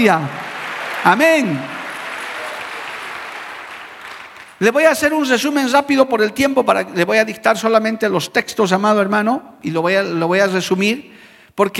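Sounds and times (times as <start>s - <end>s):
speech: 0.0s - 0.4s, 1.0s - 1.7s, 4.6s - 11.7s
crowd applauding: 0.0s - 5.0s.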